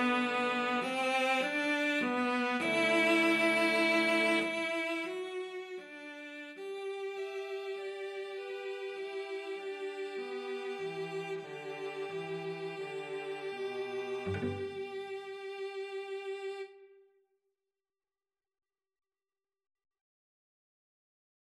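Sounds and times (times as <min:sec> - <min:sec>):
cello duet: 0:00.0 - 0:16.8.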